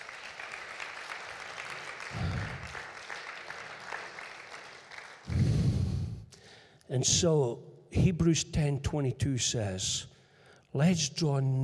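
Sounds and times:
audience applause: 0.0s - 5.4s
speech: 6.9s - 10.1s, 10.8s - 11.6s.

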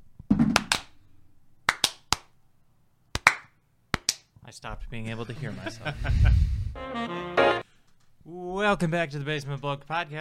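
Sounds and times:
single hand clap for audio sync: 0.5s - 0.9s, 1.7s - 2.3s, 3.2s - 4.3s
speech: 4.5s - 7.6s, 8.2s - 10.1s
laughter: 5.2s - 6.4s.

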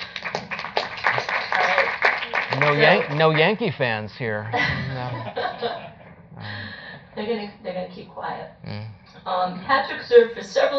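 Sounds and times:
audience applause: 0.0s - 3.8s
speech: 2.7s - 5.9s, 7.2s - 10.7s
laughter: 4.4s - 6.1s.

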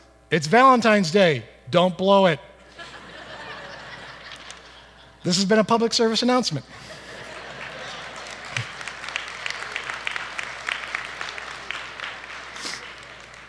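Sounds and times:
speech: 0.3s - 2.5s, 5.2s - 7.0s
laughter: 2.7s - 5.4s, 6.7s - 13.4s
audience clapping: 4.2s - 4.7s, 6.9s - 13.4s.

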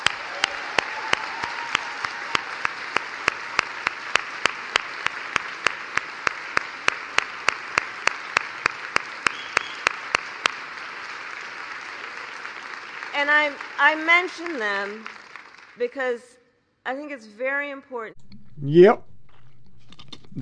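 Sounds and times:
audience applause: 0.0s - 15.8s
speech: 13.2s - 15.2s, 15.8s - 19.1s.

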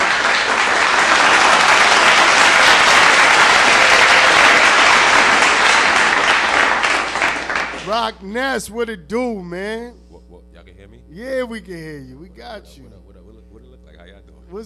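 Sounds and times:
crowd applause: 0.0s - 8.1s
speech: 7.9s - 10.0s, 10.6s - 13.1s.

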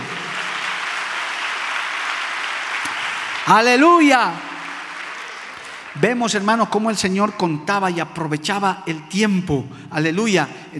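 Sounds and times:
audience applause: 0.0s - 6.9s
speech: 3.4s - 4.5s, 6.0s - 10.7s.

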